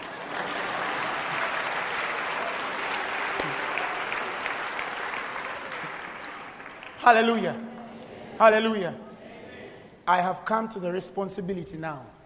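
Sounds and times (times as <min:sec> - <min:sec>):
audience clapping: 0:00.0 - 0:07.9
speech: 0:07.0 - 0:07.7, 0:08.4 - 0:09.1, 0:10.1 - 0:12.2.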